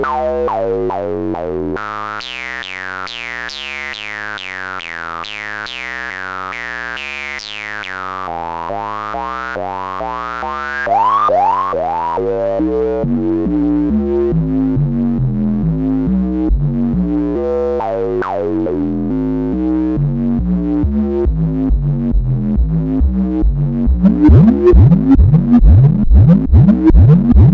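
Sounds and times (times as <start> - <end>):
synthesizer: 8.5 - 27.5.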